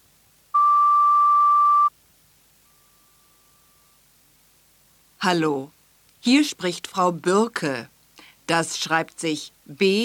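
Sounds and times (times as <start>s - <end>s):
school answering machine beep marking start of message recording: 0.6s - 1.9s
speech: 5.2s - 7.9s, 8.5s - 10.0s.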